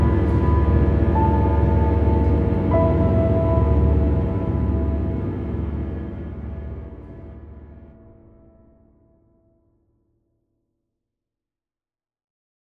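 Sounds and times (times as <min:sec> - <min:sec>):
piano with reverb: 0:00.0 - 0:08.6.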